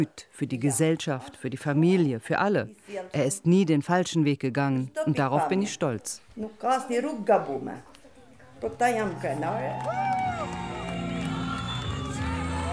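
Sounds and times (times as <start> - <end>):
speech: 0.0 - 7.9, 8.6 - 10.4
crowd cheering in Skanderbeg Square in Tirana: 9.0 - 12.7.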